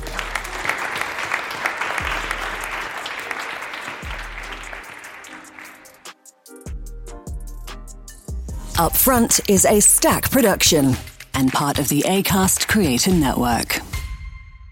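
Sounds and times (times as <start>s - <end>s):
audience applause: 0.0s - 6.1s
speech: 8.8s - 13.8s.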